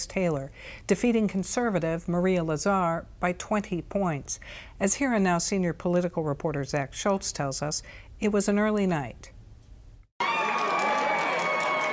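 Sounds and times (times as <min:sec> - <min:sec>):
speech: 0:00.0 - 0:09.4
election night party crowd for Chris Taylor cheering as the race is called: 0:10.2 - 0:11.9.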